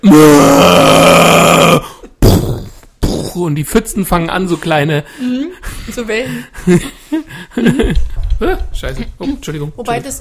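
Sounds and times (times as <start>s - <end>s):
speech: 0.0s - 0.5s, 3.6s - 10.1s
voice imitating a dinosaur's growl: 0.0s - 3.3s
laughter: 6.6s - 8.2s.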